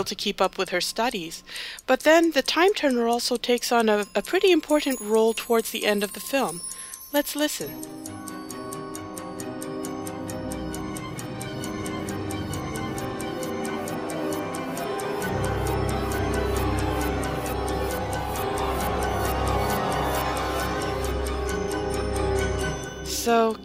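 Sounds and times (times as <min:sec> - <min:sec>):
speech: 0:00.0 - 0:08.3, 0:23.3 - 0:23.6
clock-like ticking in a film score: 0:00.0 - 0:23.6
sustained orchestral tones: 0:07.7 - 0:23.6.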